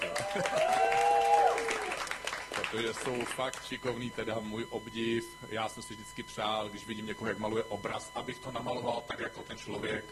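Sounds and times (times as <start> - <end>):
laughter: 0.0 - 1.0
audience applause: 0.0 - 3.6
speech: 0.4 - 0.7, 2.7 - 10.1.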